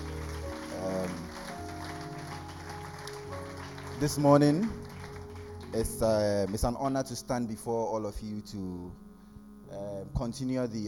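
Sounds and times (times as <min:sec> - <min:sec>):
audience applause: 0:00.0 - 0:07.0
speech: 0:04.0 - 0:04.8, 0:05.7 - 0:09.0, 0:09.7 - 0:10.8.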